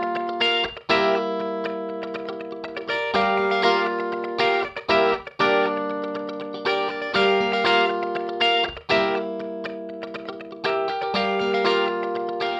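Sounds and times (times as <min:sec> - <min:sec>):
guitar through Yamaha Rev7: 0:00.0 - 0:12.5.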